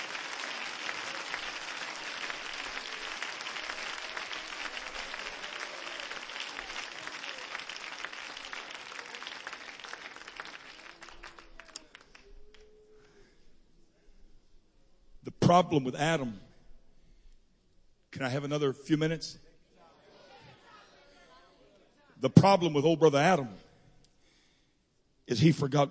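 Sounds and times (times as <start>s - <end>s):
crowd clapping hands: 0.0s - 13.2s
speech: 15.5s - 16.4s, 18.2s - 19.4s, 22.2s - 23.6s, 25.3s - 25.8s.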